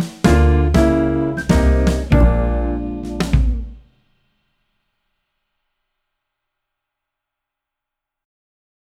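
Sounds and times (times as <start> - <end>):
jazz backing track: 0.0 - 3.8.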